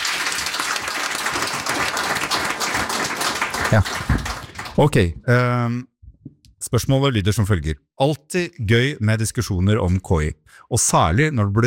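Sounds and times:
applause: 0:00.0 - 0:05.0
speech: 0:03.7 - 0:04.2, 0:04.8 - 0:05.9, 0:06.7 - 0:11.6.

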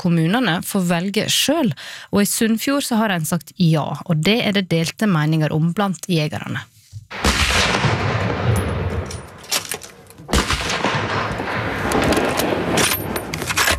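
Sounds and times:
speech: 0:00.0 - 0:07.3
rifle shots on a shooting range: 0:07.1 - 0:13.7.

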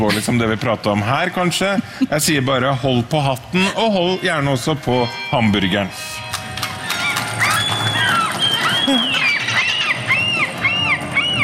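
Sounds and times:
speech: 0:00.0 - 0:06.2
seagulls crying: 0:03.6 - 0:11.4.

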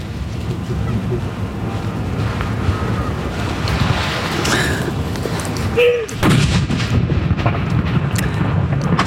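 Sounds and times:
steady wind rumble: 0:00.0 - 0:09.0
ceremonial mourning cannon salute: 0:06.2 - 0:09.0.

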